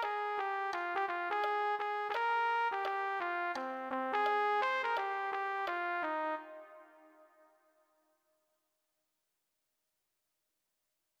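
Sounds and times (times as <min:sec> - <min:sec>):
trumpet: 0:00.0 - 0:07.5.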